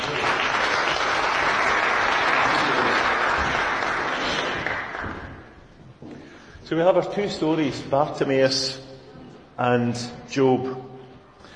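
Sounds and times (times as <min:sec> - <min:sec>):
audience applause: 0:00.0 - 0:05.7
speech: 0:06.7 - 0:08.9, 0:09.6 - 0:10.9.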